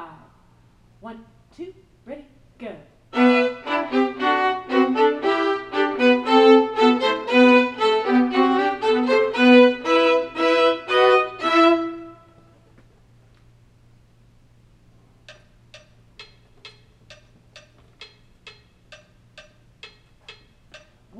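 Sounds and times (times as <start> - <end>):
first viola: 3.1 - 12.5.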